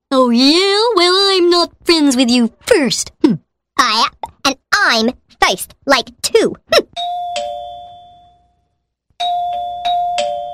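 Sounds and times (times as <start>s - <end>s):
speech: 0.3s - 0.7s, 1.6s - 6.8s
doorbell two-tone chime: 7.0s - 10.5s.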